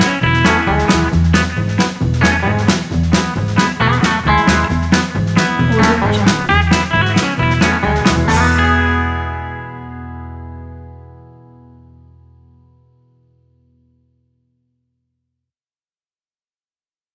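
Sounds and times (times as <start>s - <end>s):
country music: 0.0s - 12.0s.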